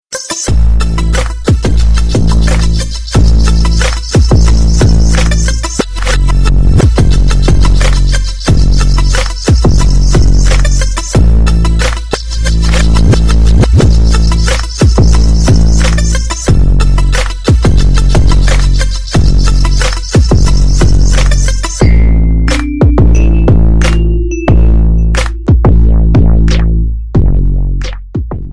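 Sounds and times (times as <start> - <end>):
mega power bass: 0.5 - 28.5.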